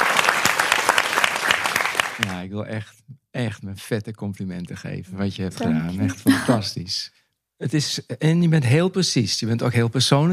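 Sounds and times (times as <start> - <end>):
audience applause: 0.0 - 2.5
speech: 2.2 - 10.3.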